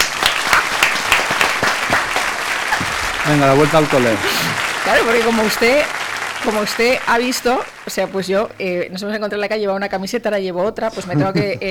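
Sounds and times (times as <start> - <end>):
audience applause: 0.0 - 8.4
speech: 3.3 - 11.6.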